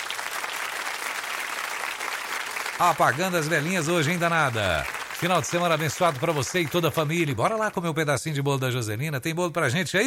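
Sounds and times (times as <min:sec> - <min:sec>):
applause: 0:00.0 - 0:07.8
speech: 0:02.8 - 0:10.0.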